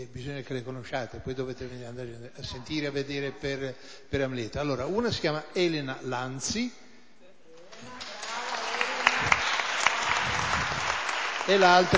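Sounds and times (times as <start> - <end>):
speech: 0.0 - 6.8, 11.5 - 11.9
audience applause: 7.7 - 11.9.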